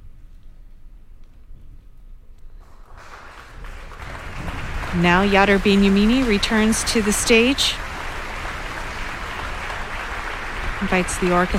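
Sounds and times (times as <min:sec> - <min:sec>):
concert audience applause: 0:02.6 - 0:11.5
speech: 0:05.0 - 0:07.8, 0:10.8 - 0:11.5.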